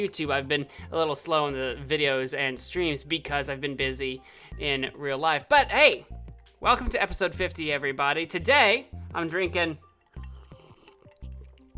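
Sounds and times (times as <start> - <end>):
speech: 0.0 - 9.9
person sipping and gulping an unusual mixed drink: 10.0 - 11.7.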